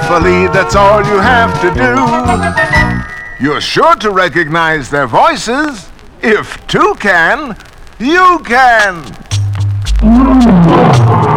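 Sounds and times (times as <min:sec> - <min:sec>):
speech: 0:00.1 - 0:02.7, 0:03.4 - 0:09.2, 0:10.0 - 0:10.6
lion roaring: 0:10.0 - 0:11.3.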